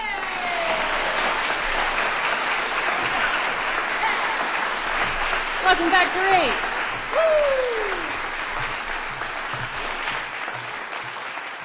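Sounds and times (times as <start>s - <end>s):
audience applause: 0.0s - 11.6s
speech: 5.7s - 8.0s.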